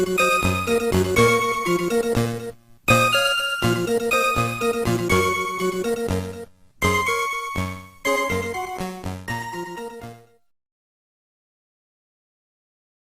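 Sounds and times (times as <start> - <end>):
questioning moderato music: 0.0 - 10.4.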